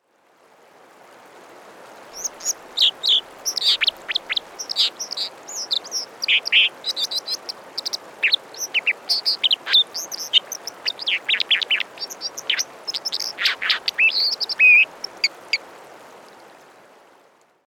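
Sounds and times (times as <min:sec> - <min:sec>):
white-throated dipper calling: 0:02.2 - 0:15.6.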